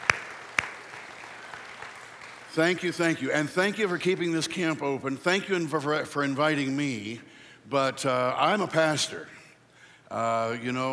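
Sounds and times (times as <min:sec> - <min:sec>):
sharp hand claps: 0:00.0 - 0:02.6
scattered clapping: 0:00.0 - 0:03.2
speech: 0:02.6 - 0:09.4, 0:10.1 - 0:10.9.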